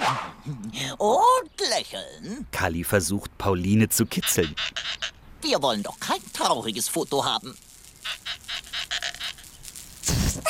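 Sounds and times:
speech: 0:00.5 - 0:08.2
balloon squeaking: 0:04.2 - 0:05.2, 0:08.0 - 0:10.4.

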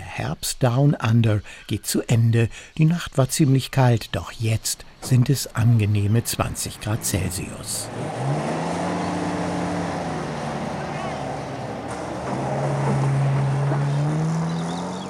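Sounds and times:
speech: 0:00.2 - 0:08.8
off-road vehicle rumbling over dirt track: 0:04.8 - 0:15.0.

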